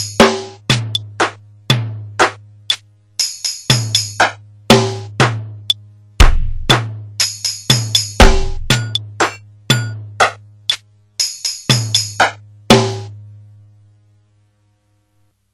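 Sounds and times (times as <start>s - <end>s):
slow metronome ticking: 0.0s - 12.4s.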